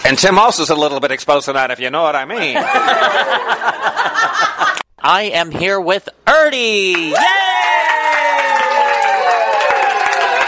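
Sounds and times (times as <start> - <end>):
speech: 0.0 - 8.4
laughter: 2.3 - 4.8
crowd cheering and applauding: 6.9 - 10.4.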